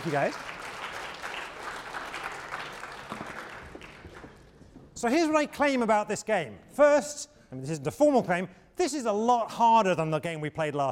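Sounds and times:
speech: 0.0s - 0.6s, 5.0s - 10.9s
audience applause: 0.0s - 4.5s.

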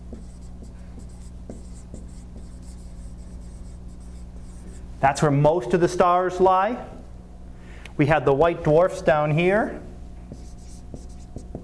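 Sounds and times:
sketching an H-R diagram's main sequence on a board: 0.0s - 4.8s, 10.3s - 11.6s
speech: 5.0s - 7.0s, 8.0s - 9.9s.

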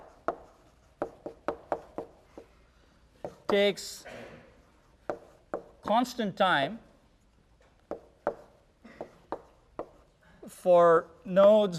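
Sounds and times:
chalk tapping and scraping on a board during a lecture: 0.0s - 2.6s, 3.2s - 3.8s, 4.6s - 6.1s, 7.8s - 10.2s
speech: 3.5s - 4.2s, 5.9s - 6.8s, 10.6s - 11.7s.

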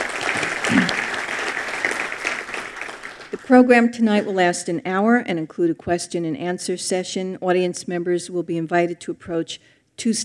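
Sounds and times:
audience applause at an evening history lecture program: 0.0s - 3.6s
speech: 3.5s - 10.2s.

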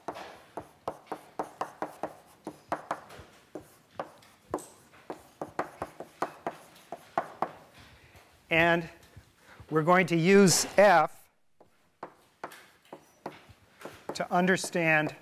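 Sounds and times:
writing an equation on a board: 0.0s - 7.8s, 11.6s - 15.2s
speech: 8.5s - 9.0s, 9.7s - 11.2s, 14.2s - 15.2s.

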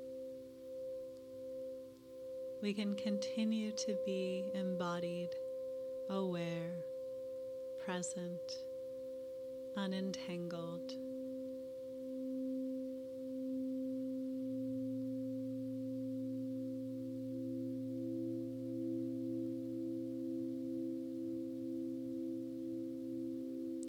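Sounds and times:
Tibetan singing bowl ringing: 0.0s - 23.8s
speech: 2.6s - 5.4s, 6.1s - 6.9s, 7.8s - 8.7s, 9.8s - 11.0s.

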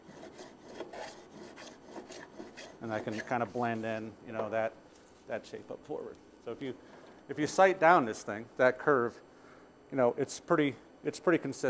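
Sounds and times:
hand plane shaving a wooden curve: 0.0s - 3.7s
speech: 2.8s - 9.3s, 9.9s - 11.6s.

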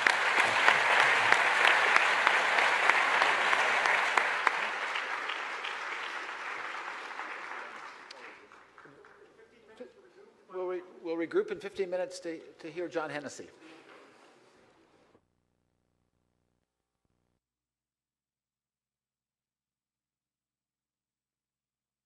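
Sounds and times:
audience applause for a startup panel at a business-school event: 0.0s - 9.3s
speech: 11.3s - 13.8s.

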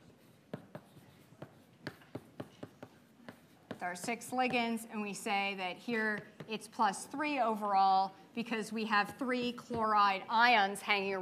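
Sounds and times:
handwriting strokes scratching out a formula during a chemistry lecture: 0.0s - 4.5s
speech: 3.8s - 11.2s.

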